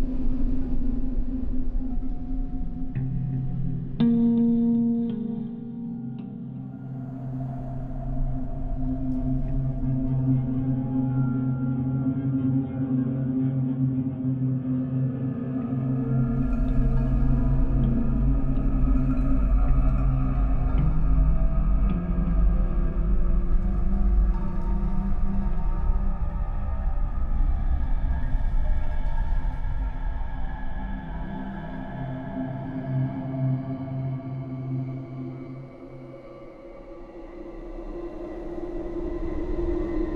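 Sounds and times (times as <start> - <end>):
dark ambience: 0.0 - 40.1.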